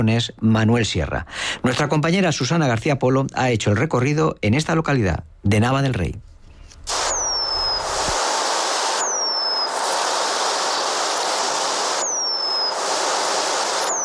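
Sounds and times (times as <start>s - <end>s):
speech: 0.0s - 6.3s
hiss: 0.0s - 14.0s
Eurasian penduline tit song: 7.0s - 8.2s, 8.8s - 14.0s.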